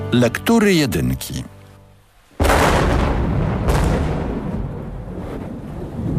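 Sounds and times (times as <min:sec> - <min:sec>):
speech: 0:00.1 - 0:01.5
thunder clap over the Polskie Radio building: 0:02.4 - 0:06.1.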